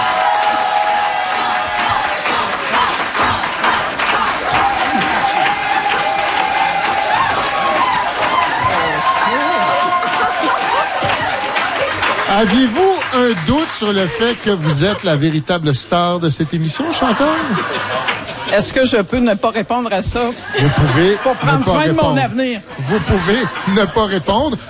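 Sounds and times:
audience applause: 0.0 - 15.7
laughter: 2.4 - 18.8, 20.3 - 24.6
speech: 12.4 - 24.6.

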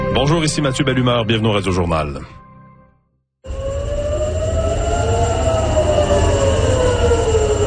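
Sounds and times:
speech: 0.1 - 2.4
air raid sirens wailing in Tel Aviv: 3.5 - 7.6.

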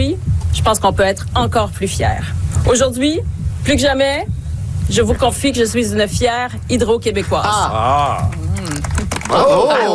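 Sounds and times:
speech: 0.6 - 4.3, 4.9 - 8.4, 9.3 - 9.9
sparse polite golf-style applause: 8.2 - 9.8.

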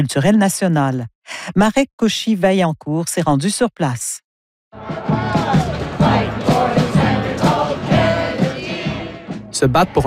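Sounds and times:
speech: 0.0 - 5.2, 9.6 - 10.0
protest crowd chanting in Washington: 4.7 - 10.0.

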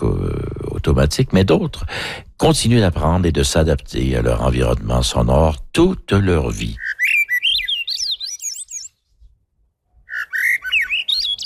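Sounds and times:
speech: 0.9 - 6.8
bird singing: 6.4 - 9.0, 10.0 - 11.4.

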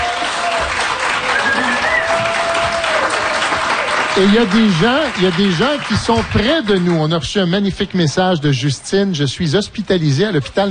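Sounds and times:
crowd applause at a live radio broadcast in Parc La Fontaine: 0.0 - 7.6
speech: 4.2 - 10.6.

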